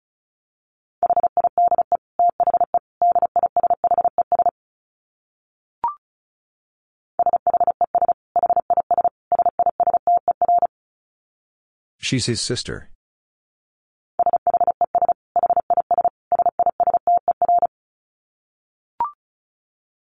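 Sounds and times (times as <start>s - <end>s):
Morse code tones at 35 wpm: 1.0s - 4.5s, 7.2s - 10.7s, 14.2s - 17.7s
speech: 12.1s - 13.0s.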